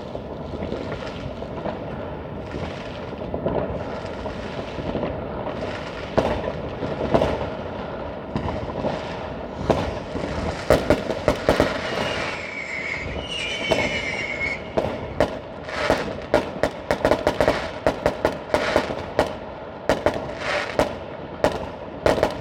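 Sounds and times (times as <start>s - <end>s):
New Year's Eve fireworks: 0.0s - 22.3s.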